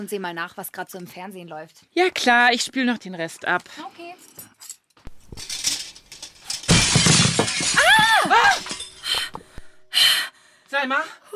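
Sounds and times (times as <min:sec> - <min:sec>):
speech: 0:00.0 - 0:04.5, 0:10.0 - 0:11.3
window glass shattering from a thrown stone: 0:05.1 - 0:09.3.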